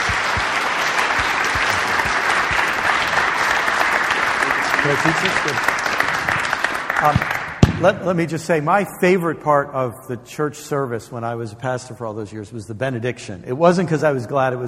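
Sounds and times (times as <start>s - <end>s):
audience round of applause: 0.0s - 7.7s
speech: 4.9s - 5.8s, 7.0s - 14.6s.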